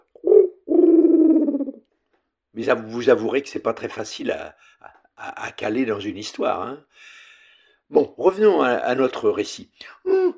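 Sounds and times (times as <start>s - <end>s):
voice imitating a dove's cooing: 0.0s - 1.8s, 10.0s - 10.3s
speech: 2.6s - 7.2s, 7.9s - 10.3s.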